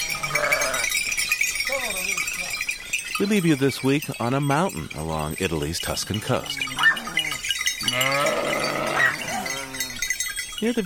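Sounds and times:
flock of sheep bleating on hillside: 0.0 - 0.9, 6.4 - 10.1
sheep bells clanking: 0.0 - 10.8
speech: 3.2 - 6.9, 10.6 - 10.8.

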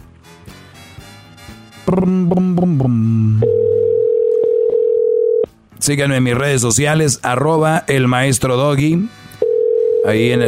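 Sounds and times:
speech: 1.9 - 3.8, 5.8 - 9.2, 10.0 - 10.4
phone line ring tone on outgoing call: 3.4 - 5.5, 9.4 - 10.4.

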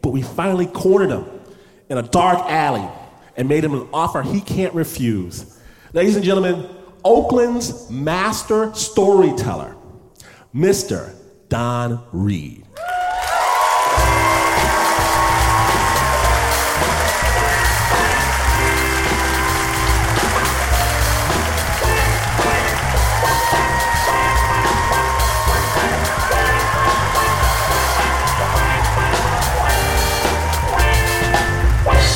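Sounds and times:
speech: 0.0 - 9.8, 10.5 - 12.6
scattered cheers: 12.8 - 31.9
crowd applause: 12.8 - 32.1
pulsing bass-heavy music track: 14.0 - 32.1.

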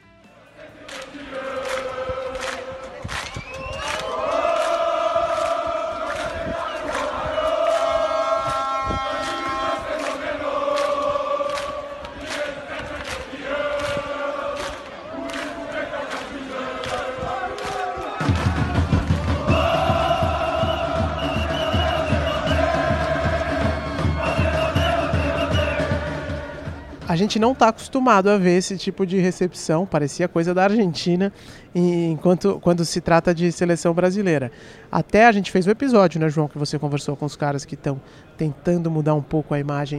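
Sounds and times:
football fans cheering and chanting: 0.0 - 27.6
speech: 27.2 - 39.9.

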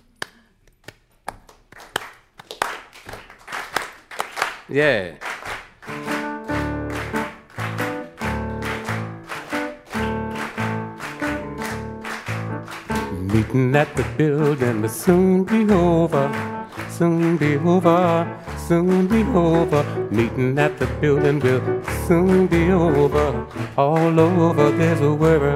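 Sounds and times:
audience clapping along to music: 0.0 - 25.5
speech: 4.7 - 5.2, 5.9 - 6.2, 13.4 - 25.5.

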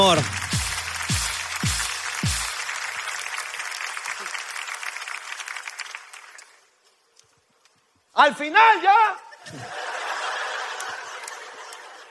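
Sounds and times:
applause: 0.0 - 6.8, 10.0 - 12.0
speech: 8.2 - 9.7
laughter: 9.3 - 12.0.

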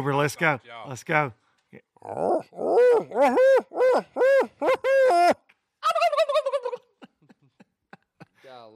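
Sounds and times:
speech: 0.0 - 5.4
diaphragm game call animal-like yelps: 2.0 - 6.8.

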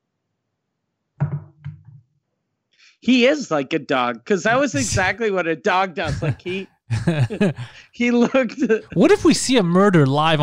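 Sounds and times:
knock on a door: 1.2 - 2.0
speech: 3.0 - 10.4
laughter: 4.5 - 5.2, 6.0 - 9.2.

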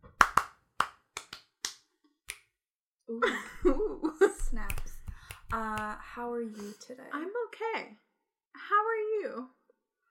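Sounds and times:
hands clapping into a microphone: 0.0 - 2.5, 4.3 - 6.0
speech: 3.1 - 3.8, 5.5 - 8.0, 8.6 - 9.6.

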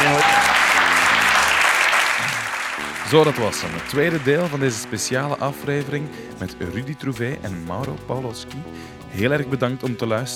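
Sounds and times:
audience applause: 0.0 - 5.4
speech: 3.1 - 10.3.

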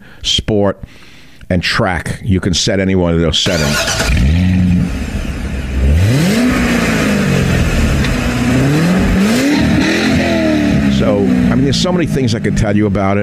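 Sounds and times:
speech: 0.2 - 4.6, 11.6 - 13.2
Corvette C8 sports car engine revving: 3.4 - 13.0.

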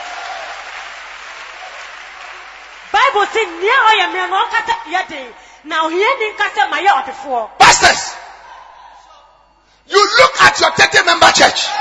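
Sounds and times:
audience clapping hands: 0.0 - 4.6
speech: 3.1 - 8.1, 10.6 - 11.7.

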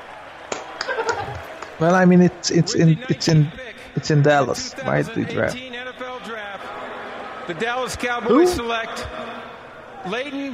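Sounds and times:
hand clapping: 0.5 - 1.8
laughter: 0.6 - 1.8, 6.6 - 9.6
speech: 1.8 - 5.7, 7.5 - 10.5.

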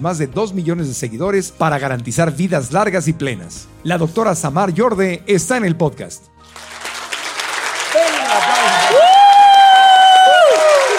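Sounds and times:
speech: 0.0 - 6.8
audience clapping: 6.4 - 10.9
audience whooping and cheering: 7.8 - 10.9.

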